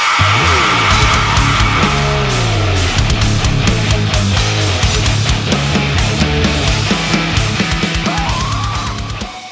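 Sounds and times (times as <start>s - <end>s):
metal music: 0.2s - 9.3s.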